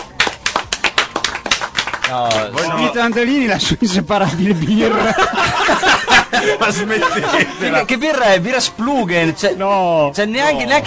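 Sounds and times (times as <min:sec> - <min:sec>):
audience clapping rhythmically: 0:00.0 - 0:03.8
speech: 0:02.1 - 0:10.8
laughter: 0:03.7 - 0:08.0.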